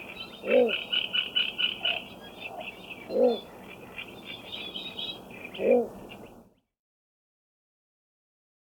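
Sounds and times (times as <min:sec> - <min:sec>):
small bird calls: 0:00.0 - 0:06.6.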